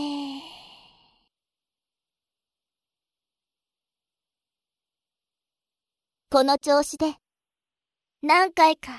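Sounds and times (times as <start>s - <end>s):
slow exhale during a breathing exercise: 0.0s - 1.3s
speech: 6.3s - 7.2s, 8.2s - 8.9s.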